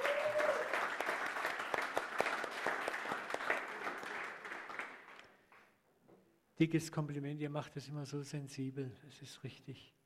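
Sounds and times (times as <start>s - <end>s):
audience applause for the band: 0.0s - 5.3s
speech: 6.6s - 10.0s.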